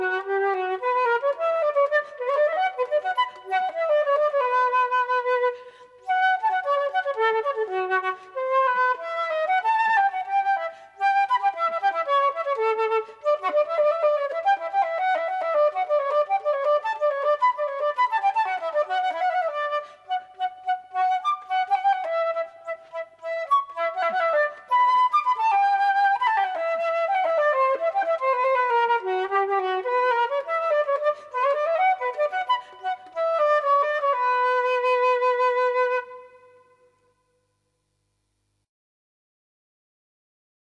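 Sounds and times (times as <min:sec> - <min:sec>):
solo flute playing a baroque piece: 0:00.0 - 0:37.5.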